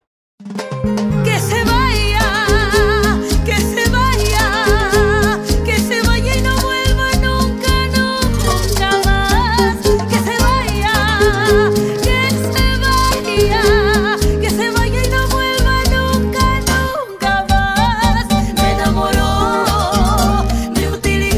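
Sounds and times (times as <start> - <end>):
cumbia music: 0.4 - 21.3.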